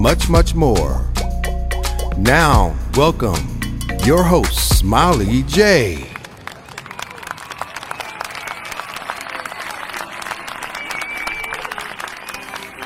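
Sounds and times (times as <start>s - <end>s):
speech: 0.1s - 1.1s, 2.2s - 6.1s
audience applause and cheering: 5.4s - 12.8s.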